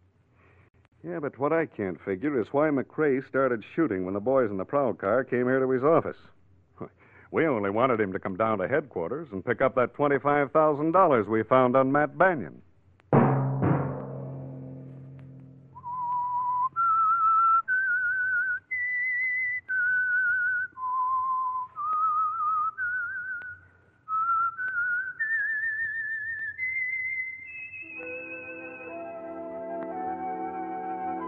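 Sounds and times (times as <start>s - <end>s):
speech: 1.0s - 12.6s
whistled theme tune signal: 15.6s - 31.2s.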